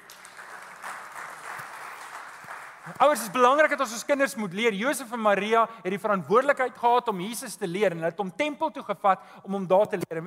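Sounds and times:
audience hand clapping: 0.0 - 3.8
speech: 2.9 - 10.2.

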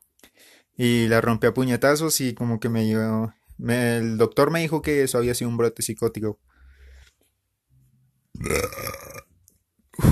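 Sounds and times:
speech: 0.8 - 6.6, 8.4 - 8.8
burps after eating ice cream: 8.4 - 9.3.

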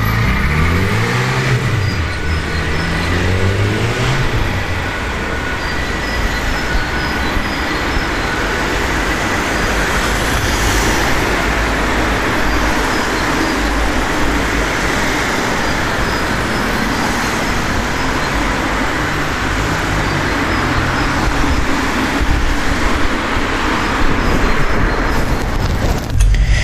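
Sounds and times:
street traffic roar: 0.0 - 26.6
ambulance siren wailing: 2.0 - 22.6.

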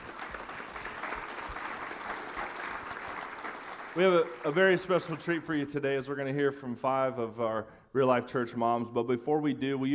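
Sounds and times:
audience applause: 0.0 - 5.6
speech: 4.0 - 9.9.

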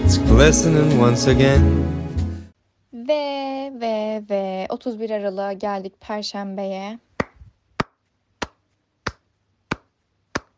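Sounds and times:
speech: 0.1 - 2.0, 3.8 - 7.1
one person clapping hands: 7.2 - 10.5.

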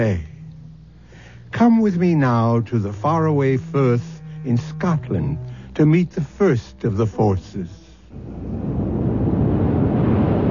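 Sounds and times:
speech: 0.0 - 0.3, 1.5 - 8.4
tide rushing in: 8.1 - 10.4.

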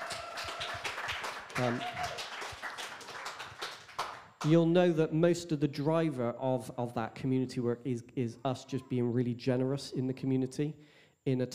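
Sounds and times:
voice cheering: 0.0 - 2.4
audience clapping: 0.0 - 4.5
speech: 1.6 - 2.1, 4.4 - 11.5.

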